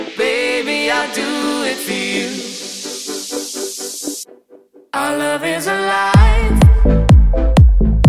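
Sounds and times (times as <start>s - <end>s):
dance music: 0.0s - 4.3s, 6.0s - 8.0s.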